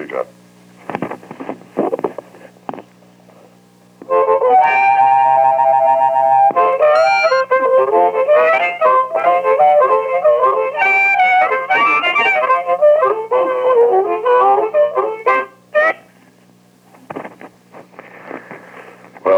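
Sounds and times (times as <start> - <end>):
harmonica tune being played: 4.0 - 16.2.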